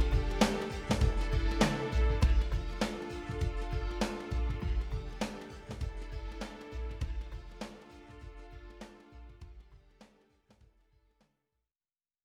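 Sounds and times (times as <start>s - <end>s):
dramatic techno music: 0.0s - 7.6s.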